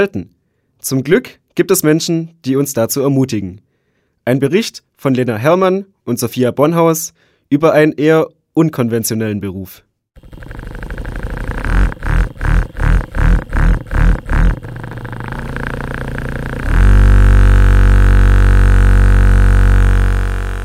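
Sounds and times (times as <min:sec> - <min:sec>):
speech: 0:00.0 - 0:10.7
vibrator buzzing: 0:10.2 - 0:20.6.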